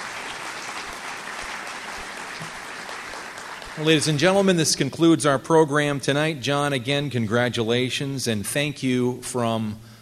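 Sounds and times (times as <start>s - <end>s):
applause: 0.0s - 4.6s
speech: 3.8s - 9.9s.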